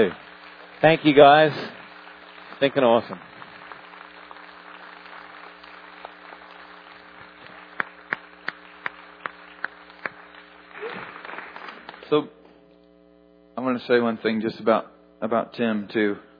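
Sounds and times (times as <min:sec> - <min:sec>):
speech: 0:00.0 - 0:00.2, 0:00.8 - 0:01.8, 0:02.6 - 0:03.3, 0:12.1 - 0:12.4, 0:13.6 - 0:16.3
crowd applause: 0:00.0 - 0:12.2
sharp evenly spaced loud claps: 0:00.0 - 0:12.3.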